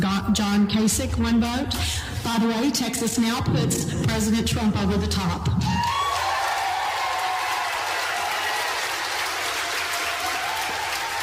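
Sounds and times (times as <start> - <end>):
speech: 0.3 - 5.8
audience applause after vote announcement: 5.8 - 11.2.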